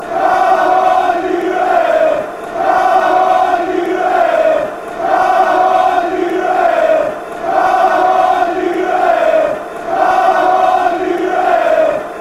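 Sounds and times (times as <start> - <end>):
football crowd chanting: 0.0 - 12.1.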